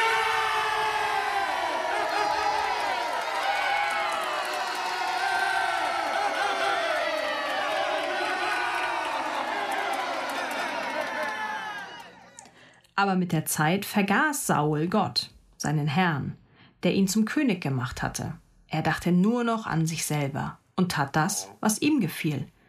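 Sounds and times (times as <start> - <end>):
crowd cheering: 0.0 - 12.6
speech: 13.0 - 22.6.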